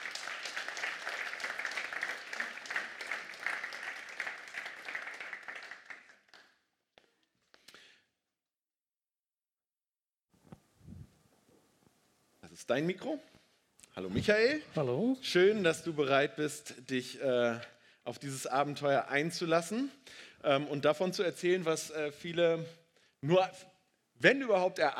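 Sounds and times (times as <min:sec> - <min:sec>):
audience applause: 0:00.0 - 0:06.6
speech: 0:12.6 - 0:13.3, 0:14.0 - 0:24.9.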